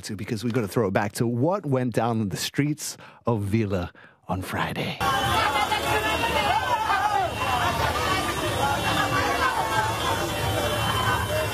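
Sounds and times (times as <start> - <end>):
speech: 0.0 - 6.4
street parade crowd hubbub: 5.0 - 11.5.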